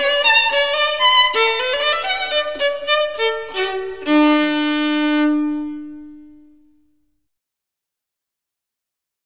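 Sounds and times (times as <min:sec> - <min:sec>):
violin playing a gigue: 0:00.0 - 0:06.8.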